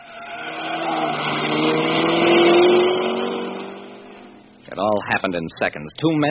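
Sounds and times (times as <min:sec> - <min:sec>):
car engine driving off from the street: 0:00.0 - 0:04.8
speech: 0:05.0 - 0:06.2.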